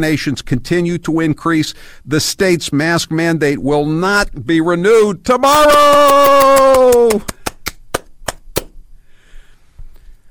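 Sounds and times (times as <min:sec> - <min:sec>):
speech: 0:00.0 - 0:07.4
loud falling whoop: 0:05.4 - 0:07.6
steady clapping: 0:05.6 - 0:08.7.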